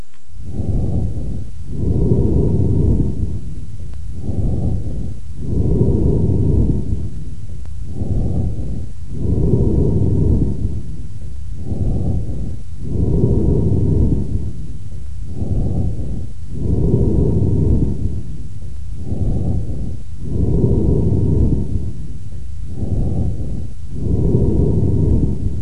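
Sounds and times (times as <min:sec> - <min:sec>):
amphoric breathing of a patient with a large left lung abscess: 0:00.0 - 0:25.6.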